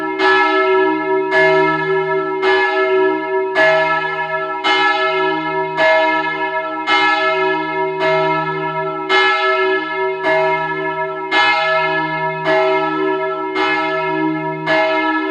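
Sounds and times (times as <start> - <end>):
church bell of a Reformed parish church ringing: 0.0 - 15.3.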